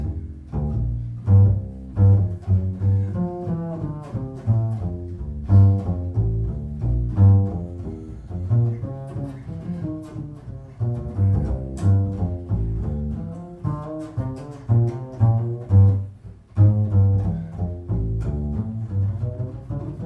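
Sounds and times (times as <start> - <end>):
up-tempo half-time walking bass blues: 0.0 - 20.0.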